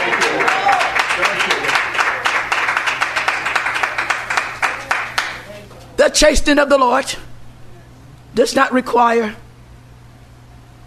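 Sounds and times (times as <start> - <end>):
audience clapping hands: 0.0 - 5.7
speech: 6.0 - 7.3, 8.4 - 9.4.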